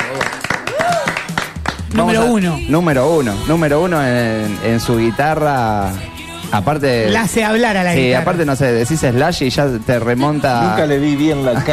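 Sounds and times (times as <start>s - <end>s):
audience applause: 0.0s - 2.0s
voices whooping and cheering: 0.1s - 1.4s
speech: 1.9s - 11.7s.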